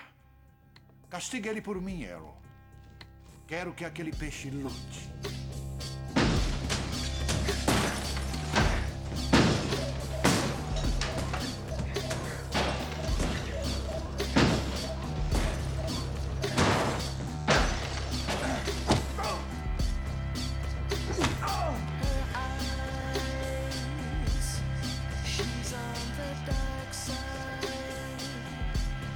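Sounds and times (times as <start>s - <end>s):
music: 0.0s - 29.1s
speech: 1.1s - 2.4s, 3.5s - 5.3s
shop being smashed up: 6.2s - 19.5s.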